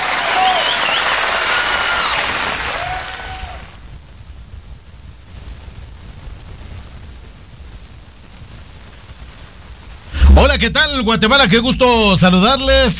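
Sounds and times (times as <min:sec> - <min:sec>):
applause: 0:00.0 - 0:03.8
speech: 0:10.6 - 0:12.9.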